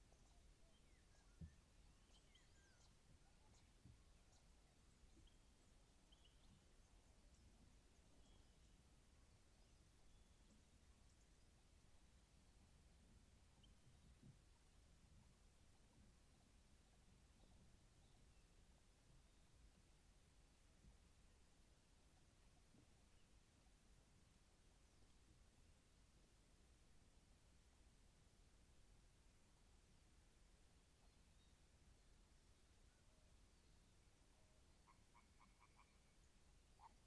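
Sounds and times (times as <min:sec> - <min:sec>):
quiet hush with low rumble at a clay pit: 0:00.0 - 0:37.0
faint frog or bird calls: 0:34.7 - 0:37.0.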